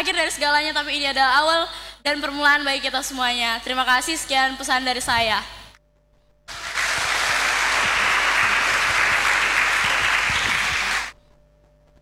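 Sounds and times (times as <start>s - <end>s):
speech: 0.0s - 5.6s
audience applause: 6.5s - 11.2s.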